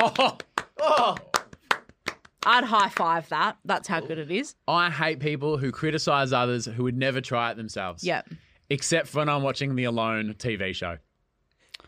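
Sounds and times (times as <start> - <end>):
speech: 0.0 - 1.3, 2.4 - 11.0
hand clapping: 0.0 - 3.2.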